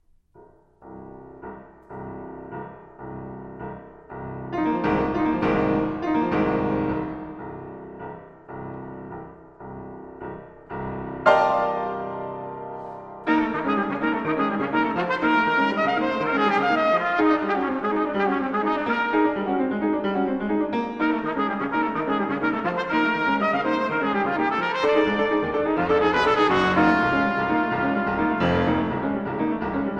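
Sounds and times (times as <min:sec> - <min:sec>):
piano: 0:00.0 - 0:29.9
trumpet: 0:12.8 - 0:29.7.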